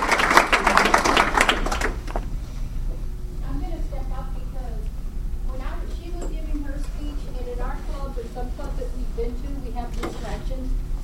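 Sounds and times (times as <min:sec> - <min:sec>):
audience clapping: 0:00.0 - 0:02.3
steady low hum: 0:00.0 - 0:11.0.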